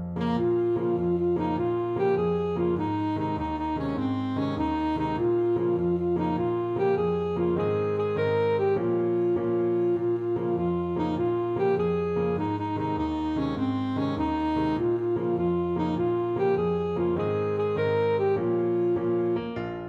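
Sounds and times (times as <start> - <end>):
alto saxophone: 0.2 - 19.8.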